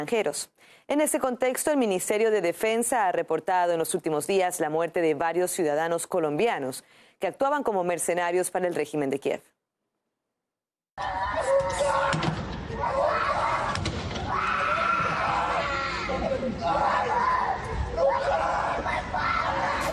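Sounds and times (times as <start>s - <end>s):
speech: 0.0s - 9.5s
family screaming as father is taken: 11.0s - 19.9s.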